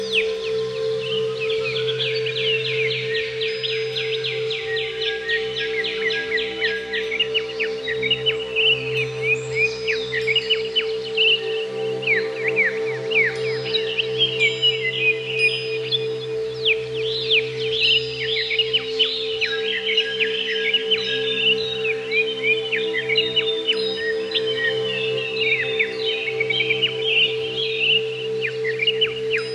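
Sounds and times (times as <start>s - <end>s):
greater green leafbird song: 0.0s - 29.5s.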